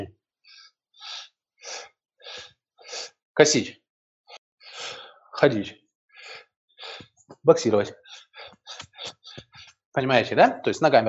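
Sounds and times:
breathing through open mouth: 0.5s - 3.2s, 4.6s - 5.2s, 6.2s - 7.2s, 8.0s - 9.7s
speech: 3.4s - 3.8s, 5.4s - 5.8s, 7.4s - 8.0s, 10.0s - 11.0s.

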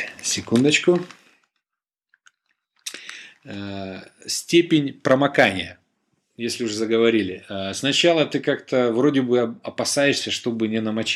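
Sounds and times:
speech: 0.2s - 1.2s, 3.4s - 5.8s, 6.4s - 11.1s
mouth clicks and slurp from a sip of water: 2.2s - 3.6s.

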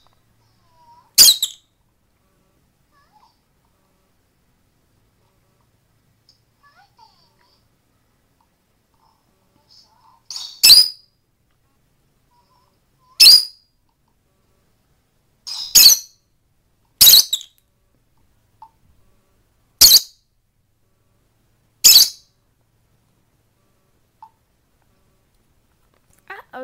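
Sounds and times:
female lovebird squeaking: 1.2s - 1.7s, 10.3s - 11.0s, 13.1s - 13.6s, 15.5s - 16.2s, 17.0s - 17.6s, 19.8s - 20.1s, 21.8s - 22.3s.

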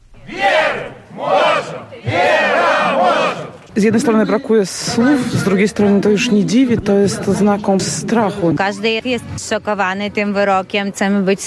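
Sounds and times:
crowd of protesters chanting in unison at a picket: 0.2s - 3.7s
speech: 3.8s - 11.4s.

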